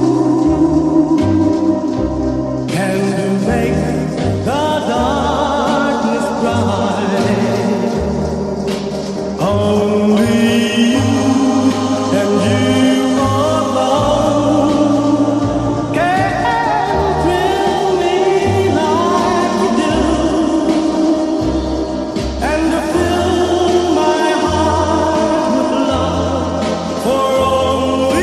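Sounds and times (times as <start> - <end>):
song with echo effect made into a ringtone: 0.0 - 28.2.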